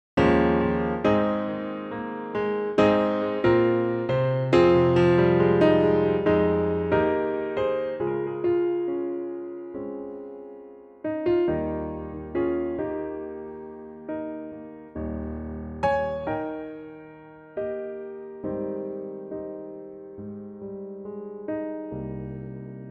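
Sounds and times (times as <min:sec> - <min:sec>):
piano: 0:00.2 - 0:22.8.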